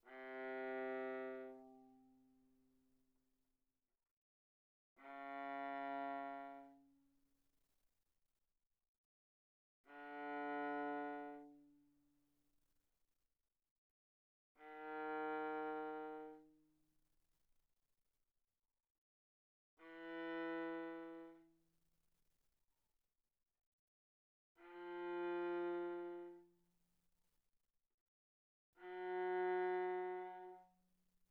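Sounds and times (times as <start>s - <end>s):
viola bowed arco sul C pianissimo: 0.1s - 2.3s, 5.0s - 6.8s, 9.9s - 11.8s, 14.6s - 16.6s, 19.8s - 21.5s, 24.6s - 26.6s, 28.8s - 30.8s.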